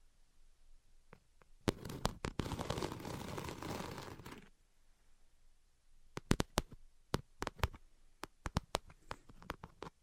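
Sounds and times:
invisible tapping and scratching: 1.6s - 4.5s, 6.2s - 10.0s.

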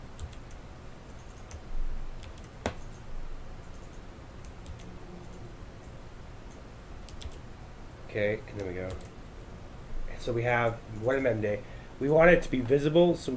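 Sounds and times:
low hiss: 0.0s - 13.3s
computer mouse clicks including a double-click: 0.2s - 1.6s, 2.2s - 3.0s, 3.6s - 7.4s, 8.6s - 9.1s
speech: 8.1s - 9.1s, 10.2s - 13.3s.

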